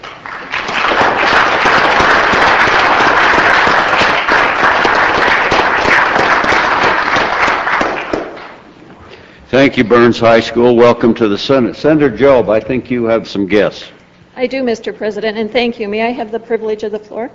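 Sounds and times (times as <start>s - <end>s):
audience applauding in a Senate chamber to welcome the Burns High School FFA: 0.0s - 8.6s
speech: 9.6s - 17.3s.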